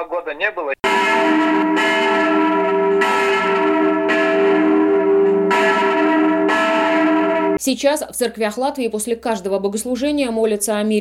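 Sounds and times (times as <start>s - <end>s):
speech: 0.0s - 1.2s, 7.6s - 10.9s
cathedral church bells ringing: 0.8s - 7.6s.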